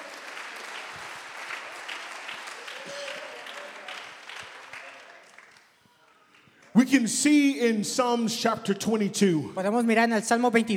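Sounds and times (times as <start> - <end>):
audience clapping hands: 0.0 - 6.8
speech: 6.8 - 10.7.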